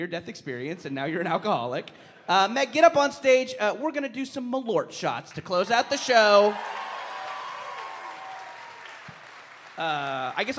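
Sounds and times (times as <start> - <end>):
speech: 0.0 - 6.9, 9.8 - 10.5
audience applause: 5.9 - 10.5.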